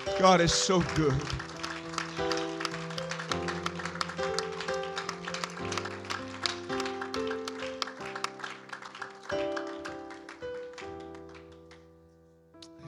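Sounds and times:
audience clapping hands: 0.0s - 12.0s
speech: 0.1s - 1.5s.

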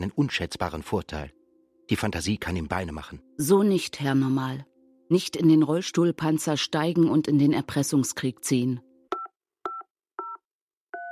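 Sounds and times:
speech: 0.0s - 8.9s
telephone number dialed with touch tones: 9.1s - 11.0s.

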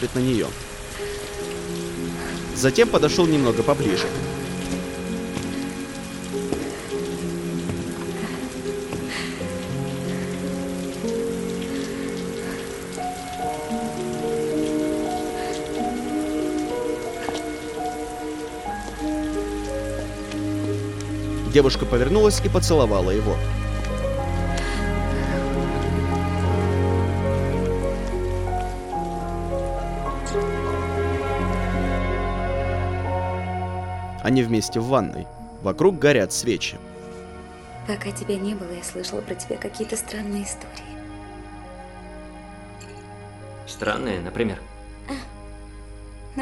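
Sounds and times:
speech: 0.0s - 1.1s, 2.6s - 4.4s, 21.5s - 23.6s, 34.3s - 36.9s, 37.9s - 41.0s, 43.8s - 44.6s
steady warm rain pattering outside a garage: 0.0s - 46.4s.

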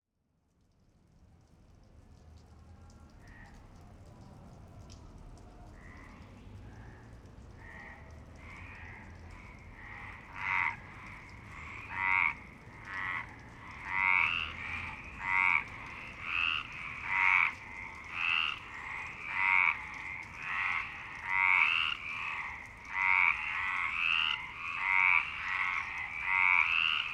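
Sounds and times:
frogs croaking in a chorus in Marseille, France: 5.8s - 27.1s.

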